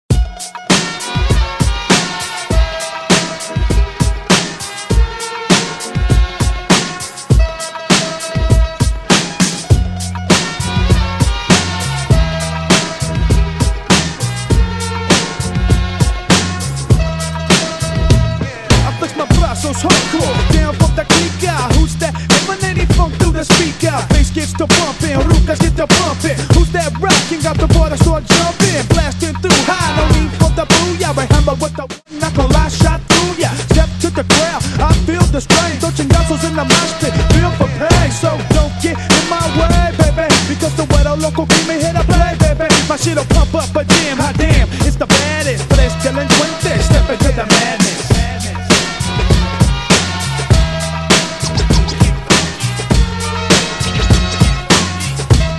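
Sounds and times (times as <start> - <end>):
old school hip hop: 0.1 - 55.5.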